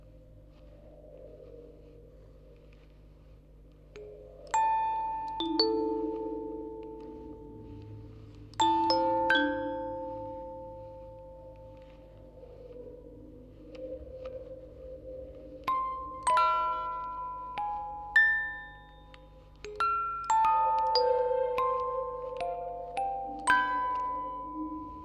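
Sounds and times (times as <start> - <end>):
four music boxes playing recorded on tape: 4.0 - 12.8, 15.6 - 25.0.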